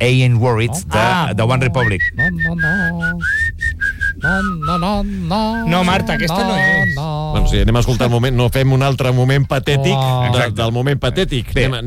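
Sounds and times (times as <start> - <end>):
speech: 0.0 - 3.6, 4.2 - 11.8
person whistling a song tune: 1.8 - 7.2.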